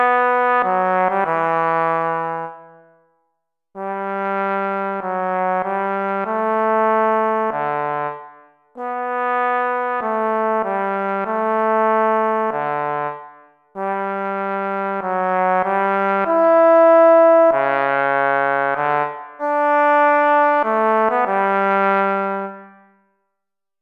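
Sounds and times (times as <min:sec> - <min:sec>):
bass trombone playing for a band audition: 0:00.0 - 0:02.7, 0:03.8 - 0:08.2, 0:08.8 - 0:22.7.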